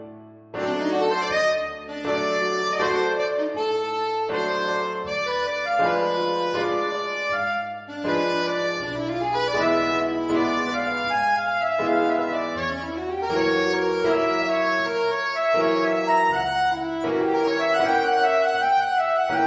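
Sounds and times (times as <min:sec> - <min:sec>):
MIDI alto saxophone suite: 0:00.6 - 0:19.4.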